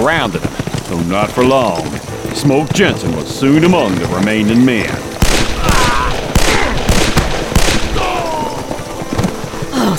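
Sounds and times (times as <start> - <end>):
speech: 0.0 - 5.2
rapid gunshots in a chaotic exchange: 5.2 - 8.8.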